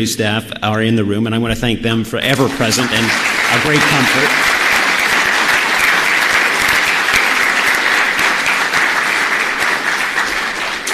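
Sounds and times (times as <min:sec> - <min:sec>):
speech: 0:00.0 - 0:04.6
audience applause: 0:02.4 - 0:10.9.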